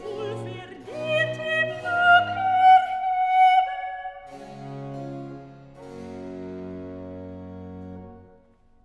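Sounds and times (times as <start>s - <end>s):
soprano singing recitative: 0.0s - 4.5s.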